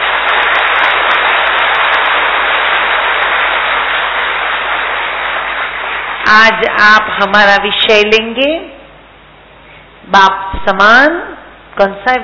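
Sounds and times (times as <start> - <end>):
audience clapping loudly in welcome: 0.0 - 6.8
speech: 6.3 - 8.7, 10.1 - 12.2.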